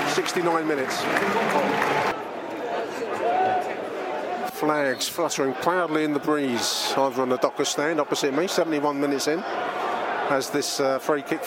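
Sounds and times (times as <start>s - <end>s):
stadium crowd applauding a substitution: 0.0s - 2.2s
stadium crowd roar and murmur: 0.0s - 11.4s
speech: 0.2s - 2.3s, 4.6s - 11.4s.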